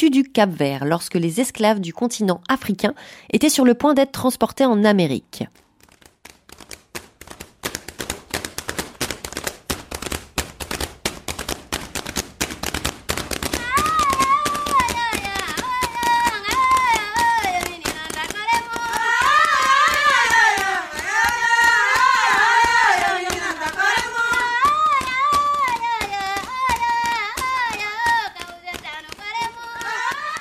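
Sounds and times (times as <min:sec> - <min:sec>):
speech: 0:00.0 - 0:05.6
Cape Verdean batuco hand-clapping and percussive slaps: 0:05.8 - 0:30.3
lead female voice singing: 0:13.6 - 0:30.3
chorus of singers answering in call-and-response: 0:18.4 - 0:28.0.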